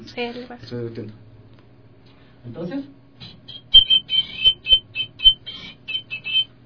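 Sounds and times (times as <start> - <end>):
speech: 0.1 - 1.3, 2.4 - 3.0
ancient Ecuadorian whistle being blown: 3.2 - 6.5.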